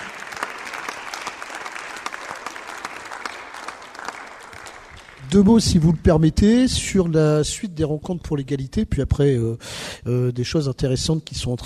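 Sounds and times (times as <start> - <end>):
audience applause: 0.0 - 6.0
speech: 5.3 - 11.6.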